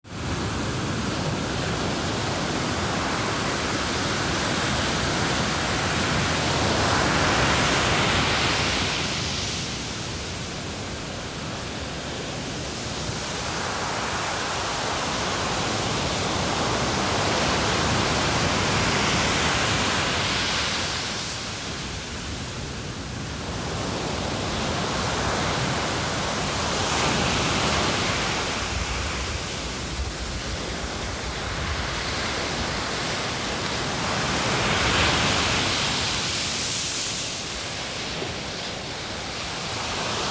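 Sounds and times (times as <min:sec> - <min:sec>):
surf at Monastery Beach in Carmel Highlands, California: 0:00.1 - 0:40.3.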